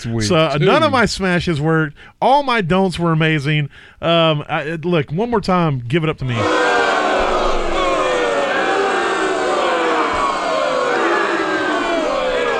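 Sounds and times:
speech: 0.0s - 6.8s
booing crowd sound effect from button: 6.3s - 12.5s.

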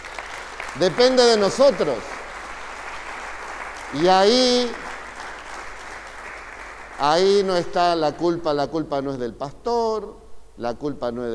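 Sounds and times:
audience applauding: 0.0s - 7.5s
speech: 0.8s - 2.1s, 3.9s - 4.8s, 7.0s - 11.3s.

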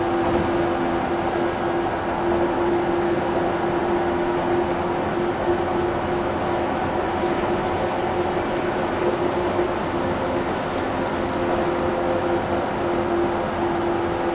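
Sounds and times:
185 series train Odoriko 106 running rumble: 0.0s - 14.3s.

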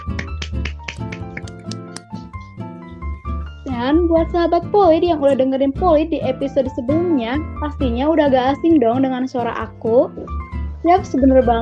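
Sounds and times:
crowd clapping: 0.0s - 2.2s
speech: 3.8s - 11.6s.

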